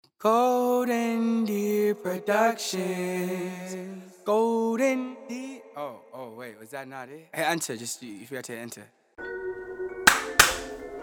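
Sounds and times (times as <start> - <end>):
speech: 0.2 - 9.8
double hand clap: 10.1 - 10.8.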